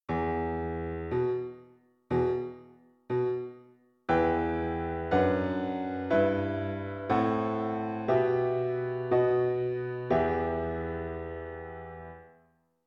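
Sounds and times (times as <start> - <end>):
piano: 0.0 - 12.6.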